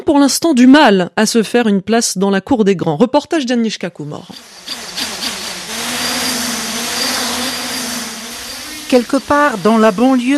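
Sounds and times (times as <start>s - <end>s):
speech: 0.1s - 4.8s, 8.9s - 10.3s
drone flying: 4.3s - 10.3s.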